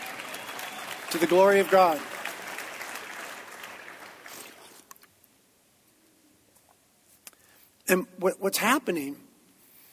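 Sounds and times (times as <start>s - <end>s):
audience applause: 0.0s - 4.8s
speech: 1.1s - 2.1s, 7.9s - 9.2s.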